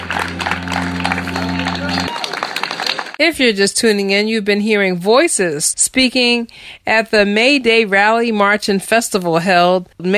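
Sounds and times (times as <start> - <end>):
low humming drone: 0.0 - 2.1
crowd clapping and cheering at a rally: 0.0 - 3.2
speech: 3.2 - 10.1.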